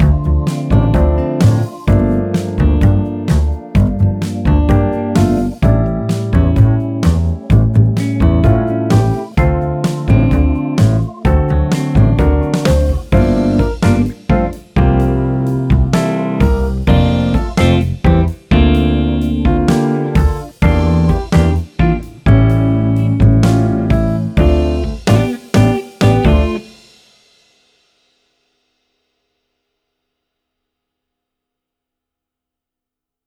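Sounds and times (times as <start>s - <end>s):
tango piano piece: 0.0s - 26.6s.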